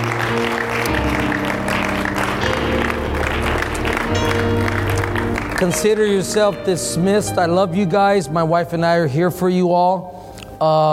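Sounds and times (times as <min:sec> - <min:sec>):
audience clapping: 0:00.0 - 0:06.8
speech: 0:05.6 - 0:10.9.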